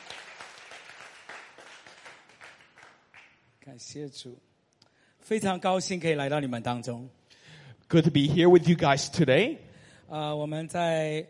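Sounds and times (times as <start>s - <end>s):
church congregation applauding during a service: 0.0s - 3.4s
speech: 3.7s - 4.5s, 5.3s - 7.2s, 7.9s - 11.2s.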